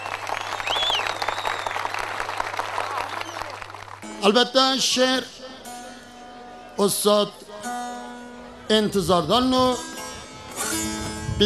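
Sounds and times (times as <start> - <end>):
audience applauding a singer invited to the stage: 0.0 - 4.0
speech: 4.2 - 5.4, 6.8 - 7.4, 8.7 - 9.9, 10.7 - 11.4.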